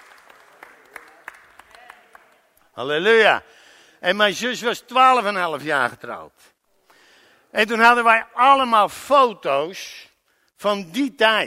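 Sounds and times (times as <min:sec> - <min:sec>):
audience scattered faint clapping during a talk: 0:00.0 - 0:02.7
speech: 0:02.8 - 0:06.5, 0:07.5 - 0:11.4.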